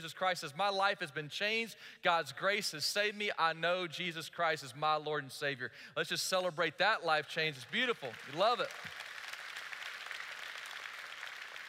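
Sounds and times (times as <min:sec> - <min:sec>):
speech: 0:00.0 - 0:09.0
audience applause: 0:07.8 - 0:11.6.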